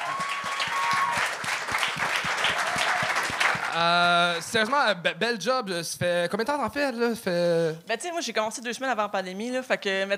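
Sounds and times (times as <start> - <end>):
audience applause: 0.0 - 4.8
speech: 3.8 - 10.1.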